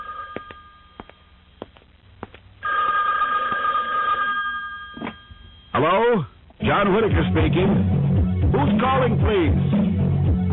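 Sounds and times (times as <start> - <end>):
telephone bell ringing: 0.0 - 1.3, 2.6 - 5.8
speech: 5.8 - 10.0.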